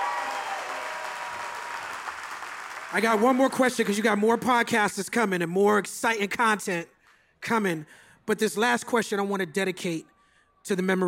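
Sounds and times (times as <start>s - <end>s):
audience applause welcoming a rapper: 0.0s - 4.0s
speech: 2.9s - 11.0s.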